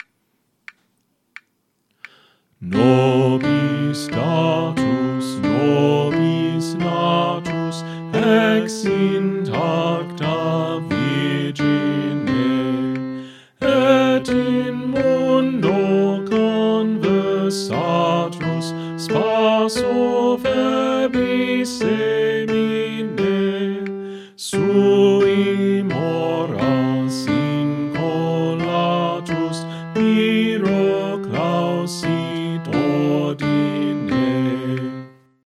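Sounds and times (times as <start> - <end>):
soprano singing: 2.6 - 35.4.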